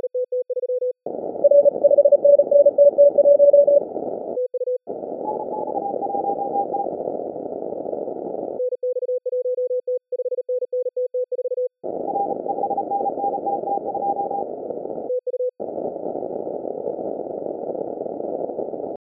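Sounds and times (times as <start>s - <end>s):
morse code beeps: 0.0s - 3.8s, 4.4s - 6.9s, 8.6s - 14.5s.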